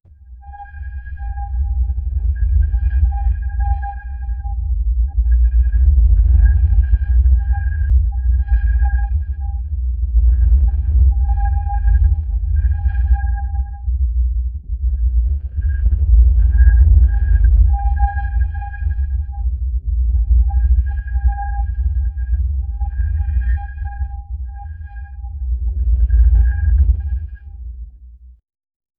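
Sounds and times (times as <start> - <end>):
ocean environment sound for a submarine: 0.3 - 27.8.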